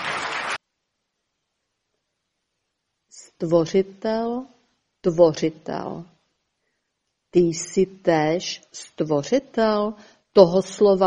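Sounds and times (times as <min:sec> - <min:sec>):
audience clapping: 0:00.0 - 0:00.6
speech: 0:03.4 - 0:06.1, 0:07.3 - 0:11.0.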